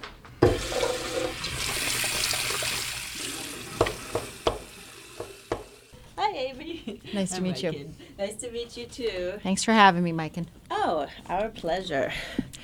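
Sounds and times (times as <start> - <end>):
running water for washing hands: 0.4 - 6.0
speech: 7.1 - 12.4.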